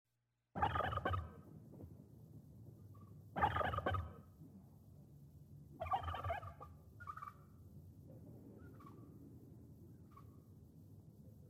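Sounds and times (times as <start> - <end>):
turkey gobbling: 0.6 - 1.4, 3.4 - 4.2, 5.8 - 7.4.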